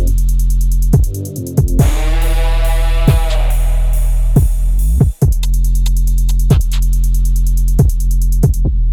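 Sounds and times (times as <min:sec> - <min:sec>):
trap beat: 0:00.0 - 0:08.8.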